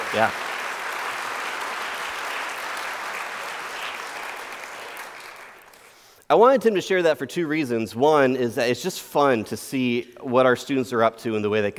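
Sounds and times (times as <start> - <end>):
audience applause: 0.0 - 6.0
speech: 0.1 - 0.4, 6.3 - 11.7.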